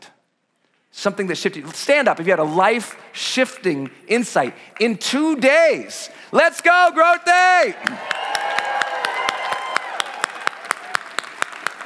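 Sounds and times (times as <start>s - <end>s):
speech: 1.0s - 8.2s
crowd clapping rhythmically: 1.6s - 5.8s, 6.6s - 11.8s
crowd cheering and whooping: 7.8s - 11.8s.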